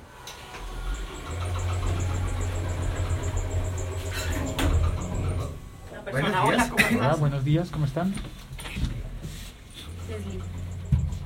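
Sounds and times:
elevator running: 0:00.0 - 0:07.2, 0:09.9 - 0:11.2
speech: 0:06.1 - 0:08.5.

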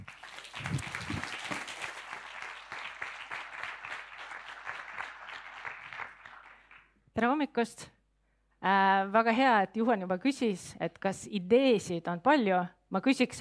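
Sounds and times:
audience applause: 0:00.0 - 0:06.9
speech: 0:07.2 - 0:08.0, 0:08.6 - 0:13.3.

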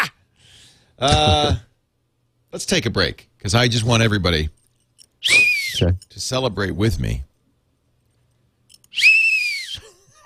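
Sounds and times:
speech: 0:01.0 - 0:01.7, 0:02.5 - 0:04.6, 0:05.2 - 0:07.3
whistle blown: 0:05.2 - 0:06.0, 0:08.9 - 0:09.8.

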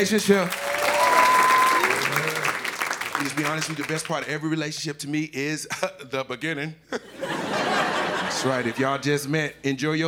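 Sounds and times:
speech: 0:00.0 - 0:00.7, 0:03.2 - 0:07.4, 0:08.3 - 0:10.0
laughter: 0:00.0 - 0:04.4, 0:06.9 - 0:09.2
audience clapping: 0:00.0 - 0:04.7.

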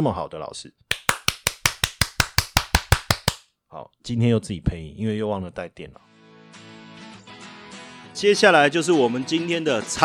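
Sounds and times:
speech: 0:00.0 - 0:00.9, 0:03.7 - 0:06.1, 0:08.2 - 0:10.0
hand claps: 0:00.9 - 0:03.4.

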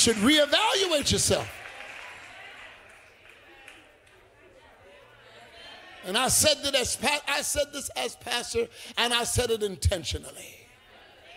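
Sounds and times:
speech: 0:00.0 - 0:01.6, 0:06.0 - 0:10.6
soft dense clapping from a crowd: 0:00.0 - 0:04.3.

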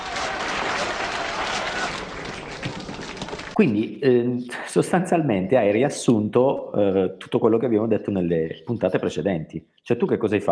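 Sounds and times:
applause: 0:00.0 - 0:03.6
speech: 0:03.6 - 0:10.5.

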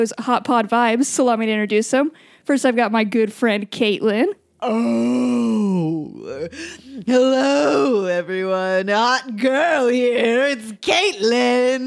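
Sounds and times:
speech: 0:00.0 - 0:11.8
person imitating a whale call: 0:04.6 - 0:08.0.

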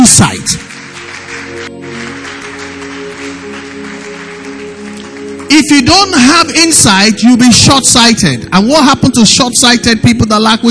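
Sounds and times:
audience clapping: 0:00.0 - 0:06.6
speech: 0:05.6 - 0:10.7.

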